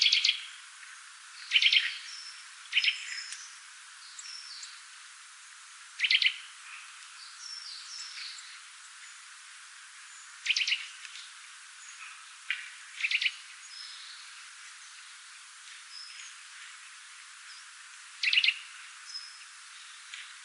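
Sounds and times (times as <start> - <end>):
Sitta europaea calling: 0.0 - 0.5, 1.4 - 4.8, 6.0 - 8.6, 10.2 - 11.0, 13.0 - 14.2, 18.2 - 19.5.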